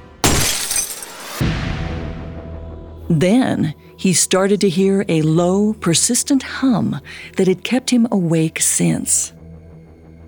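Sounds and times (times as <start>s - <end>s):
glass shattering: 0.2s - 1.4s
light bulb exploding: 0.2s - 1.8s
speech: 3.1s - 9.4s.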